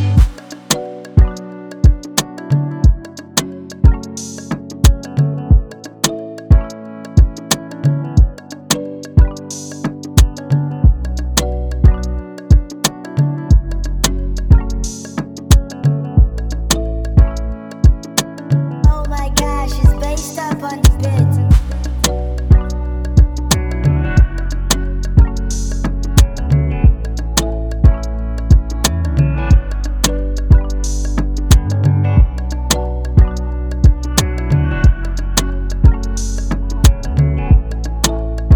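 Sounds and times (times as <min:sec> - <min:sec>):
music beat in D major: 0:00.0 - 0:38.5.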